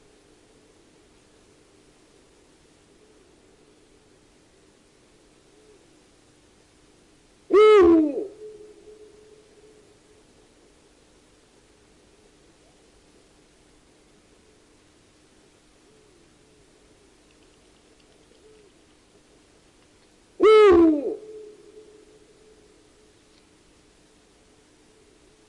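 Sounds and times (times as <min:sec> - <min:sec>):
Eurasian eagle-owl harsh call sliding down in pitch: 0:07.5 - 0:09.7, 0:20.4 - 0:22.2.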